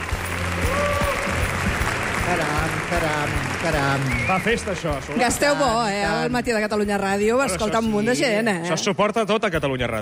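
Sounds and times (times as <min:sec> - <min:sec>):
audience applause: 0:00.0 - 0:05.6
speech: 0:02.3 - 0:10.0.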